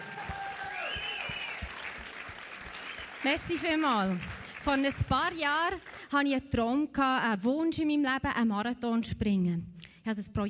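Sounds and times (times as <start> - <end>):
faint cheering and whistles: 0.0 - 2.1, 2.7 - 3.2
audience applause: 0.0 - 6.0
speech: 3.2 - 10.4.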